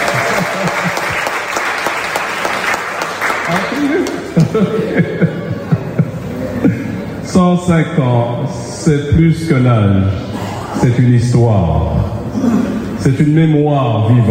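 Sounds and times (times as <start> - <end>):
laughter: 0.0 - 1.5, 3.5 - 7.2
audience applauding: 0.0 - 4.7
speech: 7.4 - 10.2, 10.8 - 14.2.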